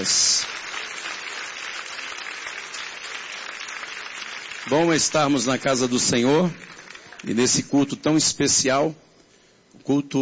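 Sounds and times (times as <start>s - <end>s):
speech: 0.0s - 0.6s, 4.6s - 9.1s, 9.8s - 10.2s
audience clapping: 0.0s - 7.7s.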